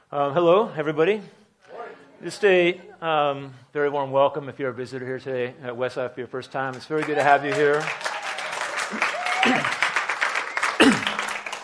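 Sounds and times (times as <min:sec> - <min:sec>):
speech: 0:00.1 - 0:01.4, 0:02.2 - 0:08.1, 0:08.9 - 0:09.6
audience clapping: 0:06.6 - 0:11.6.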